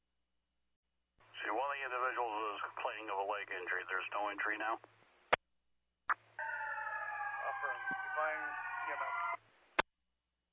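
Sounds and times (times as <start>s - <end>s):
speech: 1.6s - 5.0s
fire truck siren: 6.4s - 9.4s.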